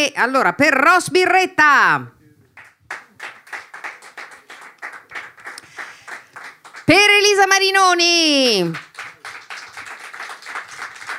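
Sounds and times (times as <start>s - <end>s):
speech: 0.0s - 2.2s, 6.9s - 8.9s
audience applause: 2.6s - 7.6s, 8.6s - 11.1s.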